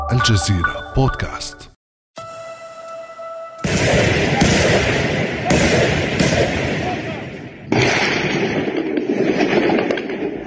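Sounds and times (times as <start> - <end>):
speech: 0.2 - 1.7
booming explosions: 3.6 - 10.4
gunfire: 3.6 - 10.4.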